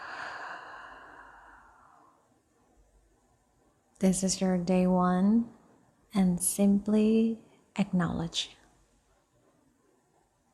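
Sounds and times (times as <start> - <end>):
deep breath in and out: 0.0 - 2.2
speech: 4.0 - 8.6.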